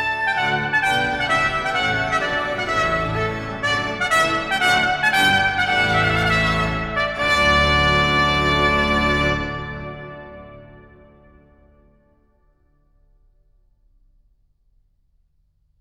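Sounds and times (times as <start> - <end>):
trumpet piece: 0.0 - 12.1.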